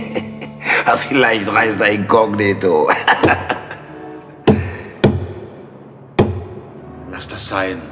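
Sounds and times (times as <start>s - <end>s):
speech: 0.9s - 3.6s, 7.5s - 7.9s
knocking on a wooden coffin: 4.5s - 5.4s, 6.2s - 6.6s.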